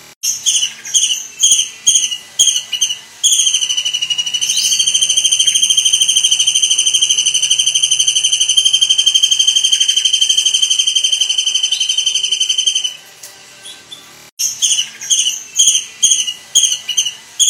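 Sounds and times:
Kingfisher calling: 0.2 - 13.0, 13.6 - 17.4.

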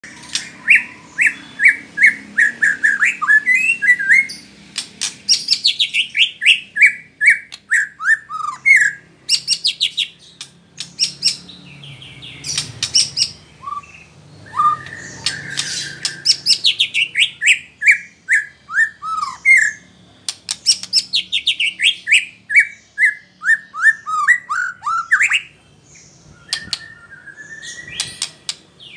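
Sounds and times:
white-rumped shama song: 0.0 - 28.9.

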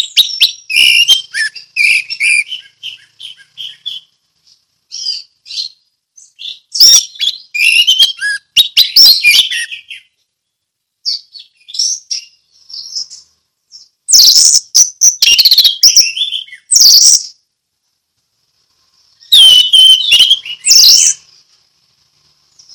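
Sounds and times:
Orange-headed thrush singing: 0.0 - 17.5, 18.6 - 22.7.

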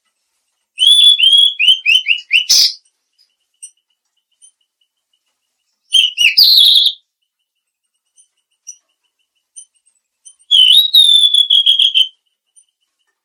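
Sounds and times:
mangrove blue flycatcher whistling: 0.8 - 2.8, 5.9 - 7.0, 10.4 - 12.2.

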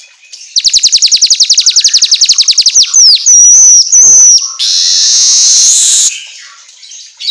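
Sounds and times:
Asian golden weaver song: 0.5 - 6.1.

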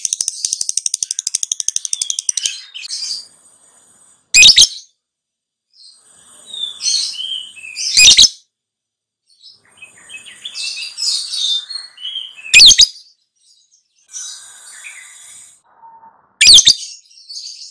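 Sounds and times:
lovebird high chattering twitters: 0.0 - 3.3, 4.4 - 4.9, 6.7 - 8.3, 9.8 - 12.9.

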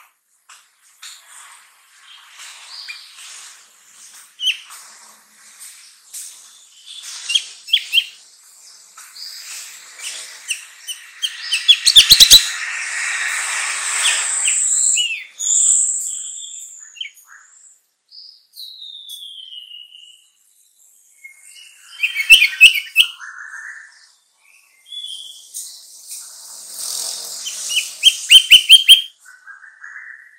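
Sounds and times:
sooty-headed bulbul singing: 9.0 - 17.2, 21.8 - 23.1, 27.4 - 29.1.

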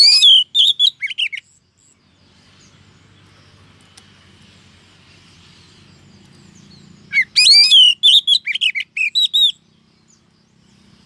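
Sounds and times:
female Oriental magpie-robin calling the male: 0.0 - 1.6, 6.6 - 10.2.

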